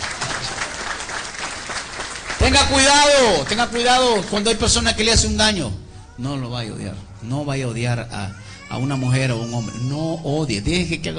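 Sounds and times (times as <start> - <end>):
audience applause: 0.0 - 4.8
speech: 2.4 - 11.1.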